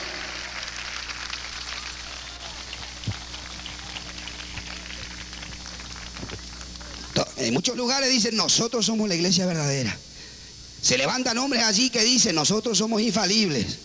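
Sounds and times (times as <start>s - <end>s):
audience applause: 0.0s - 7.2s
speech: 7.4s - 10.1s, 10.8s - 13.8s.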